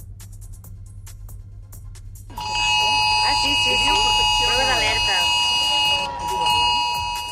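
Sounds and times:
mobile phone emergency alert multi-tone wail: 2.3s - 7.3s
voices talking: 2.8s - 7.3s.

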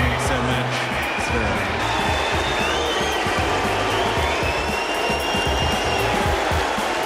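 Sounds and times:
crowd booing Novak Djokovic retiring injured at the Australian Open: 0.0s - 7.0s.

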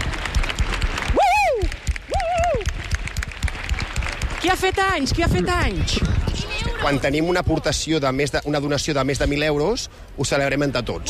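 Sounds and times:
applause and cheering in the office: 0.0s - 5.4s
speech: 4.4s - 6.1s, 6.8s - 11.0s.

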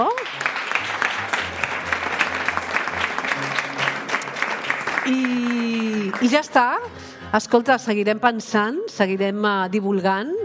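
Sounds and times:
audience applause: 0.0s - 6.8s
speech: 5.0s - 10.4s.

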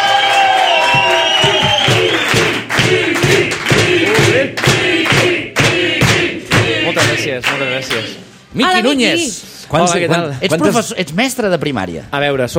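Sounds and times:
shouts and whoops: 0.0s - 2.3s
audience clapping welcoming a guest onto a stage: 0.0s - 8.1s
speech: 7.9s - 12.5s.

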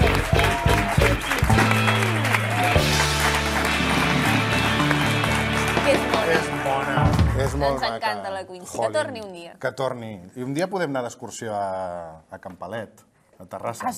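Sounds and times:
audience applause: 0.0s - 8.0s
speech: 7.6s - 13.9s.

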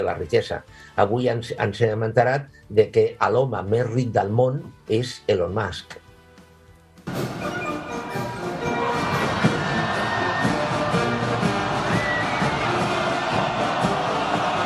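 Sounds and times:
speech: 0.0s - 6.0s
parade music in China: 7.0s - 14.6s
people shouting and cheering: 8.2s - 14.6s
parade crowd roar in China: 8.4s - 14.6s.

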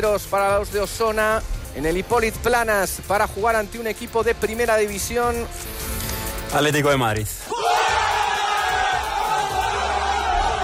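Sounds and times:
speech: 0.0s - 5.9s, 6.5s - 7.6s
group of players shouting and cheering: 7.4s - 10.6s.

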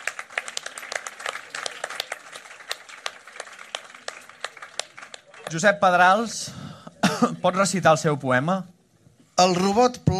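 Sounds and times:
audience applause: 0.0s - 6.3s
speech: 5.5s - 6.6s, 7.2s - 8.7s, 9.4s - 10.1s.

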